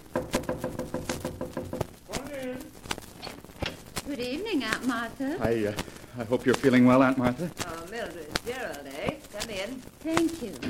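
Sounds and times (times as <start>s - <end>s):
knocking on a door: 0.1s - 2.0s
speech: 4.1s - 10.6s.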